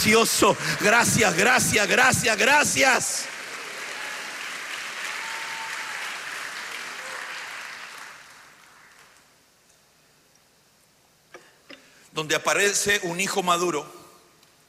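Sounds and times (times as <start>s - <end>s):
speech: 0.0s - 3.4s, 12.2s - 14.0s
people clapping for the Lord: 0.0s - 9.4s.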